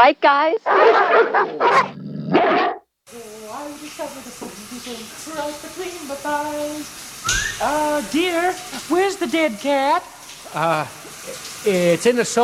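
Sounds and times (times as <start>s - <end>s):
speech: 0.0s - 12.4s
dog barking: 0.7s - 2.9s.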